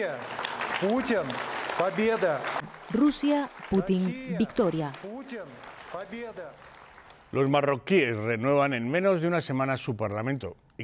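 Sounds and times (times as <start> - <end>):
speech: 0.0 - 6.7, 7.3 - 10.8
deputies standing and applauding: 0.0 - 7.8.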